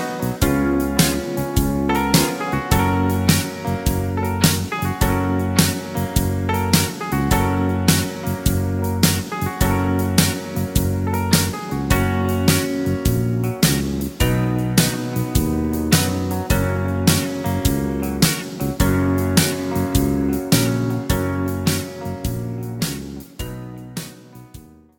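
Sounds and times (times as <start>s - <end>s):
backing track in G flat without backing vocals: 0.0s - 24.6s.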